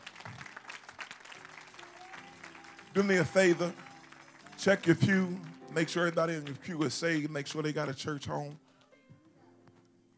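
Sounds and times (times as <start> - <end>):
church congregation clapping hands in praise: 0.0 - 7.9
speech: 3.0 - 3.8, 4.6 - 8.6.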